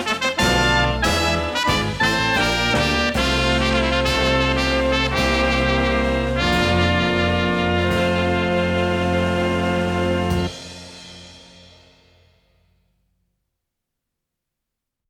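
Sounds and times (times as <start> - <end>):
wedding march music: 0.0 - 11.1.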